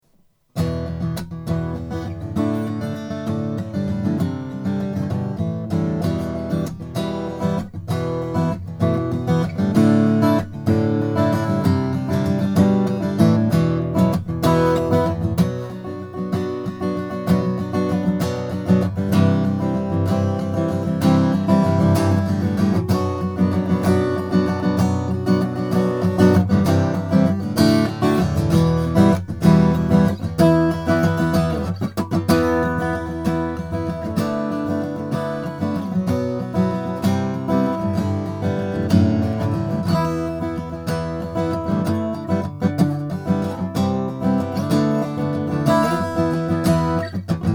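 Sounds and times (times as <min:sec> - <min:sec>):
Lowden O50C guitar: 0:00.0 - 0:47.5.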